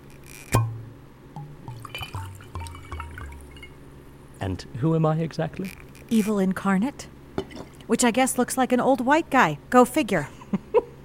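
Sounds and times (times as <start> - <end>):
glass clinking down: 0.6 - 3.8
liquid glugging into a drinking glass: 0.6 - 3.9
speech: 4.4 - 7.1, 7.9 - 10.4.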